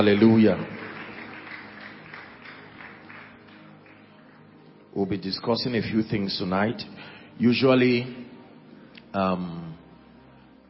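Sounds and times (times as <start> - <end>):
speech: 0.0 - 0.8, 5.0 - 8.3, 9.1 - 9.6
audience hand clapping: 0.0 - 4.5.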